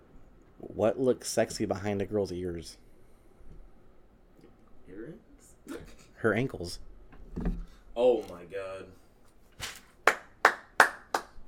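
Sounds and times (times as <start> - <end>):
speech: 0.8 - 2.8, 6.2 - 9.0
one person clapping hands: 9.6 - 11.4.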